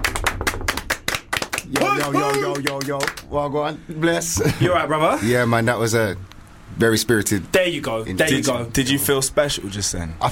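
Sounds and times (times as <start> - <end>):
audience clapping for a guest's arrival: 0.0 - 3.3
speech: 2.0 - 10.3.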